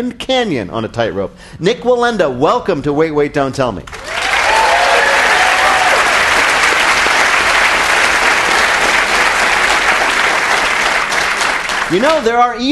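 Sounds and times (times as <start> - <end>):
speech: 0.0 - 4.1, 11.9 - 12.7
audience round of applause: 3.9 - 12.2
faint cheer: 4.0 - 6.8.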